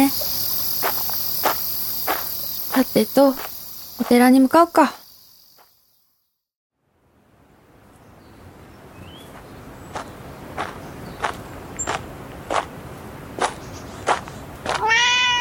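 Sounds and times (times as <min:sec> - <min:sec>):
footsteps crunching: 0:00.0 - 0:05.8, 0:09.3 - 0:15.2
speech: 0:02.8 - 0:05.0
cat meowing: 0:14.8 - 0:15.3.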